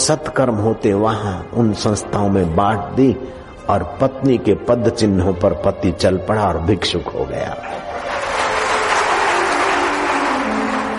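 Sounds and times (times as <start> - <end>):
speech: 0.0 - 8.2
audience applauding: 7.6 - 10.9.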